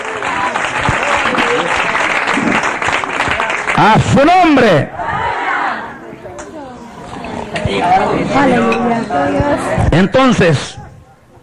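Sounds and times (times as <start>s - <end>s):
audience applause: 0.0s - 4.2s
speech: 3.8s - 5.0s, 7.7s - 10.8s.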